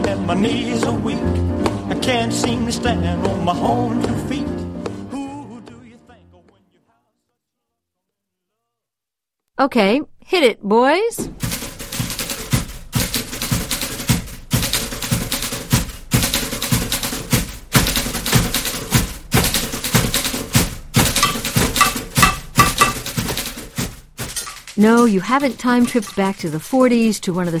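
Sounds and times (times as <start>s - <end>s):
speech: 0.3s - 4.5s, 9.6s - 11.4s, 24.8s - 27.5s
several typewriters clacking in rhythm: 11.4s - 27.5s.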